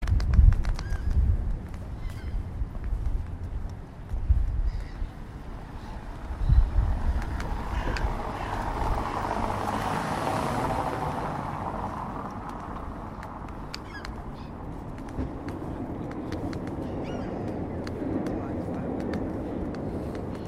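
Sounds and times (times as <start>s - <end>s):
bikes by the Thames in Richmond: 0.0s - 20.4s
birds by the Thames in Richmond at dusk: 0.6s - 3.2s, 4.6s - 9.6s, 12.5s - 20.4s
cars by the Thames in Richmond: 0.7s - 20.4s.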